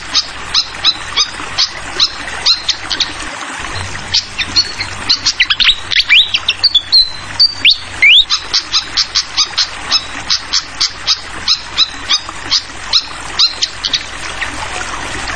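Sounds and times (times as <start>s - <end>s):
flowing water: 0.0s - 15.3s
fantail song: 3.7s - 14.1s.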